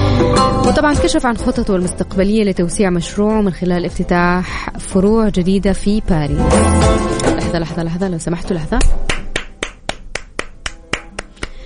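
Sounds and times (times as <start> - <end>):
speech: 0.7 - 9.2
audience clapping: 9.1 - 11.6.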